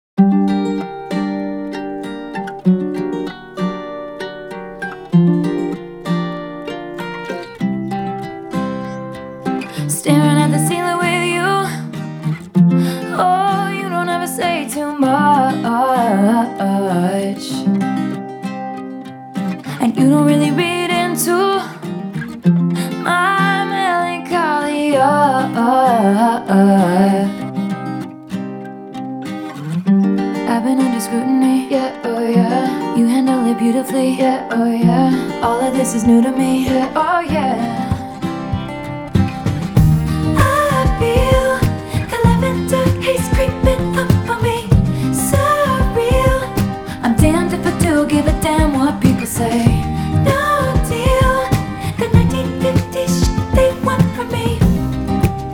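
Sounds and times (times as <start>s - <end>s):
acoustic music: 0.2s - 55.5s.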